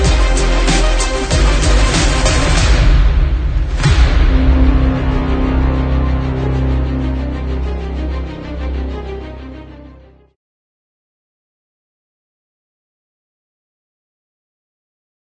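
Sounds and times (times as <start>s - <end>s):
sports trailer music: 0.0s - 10.4s.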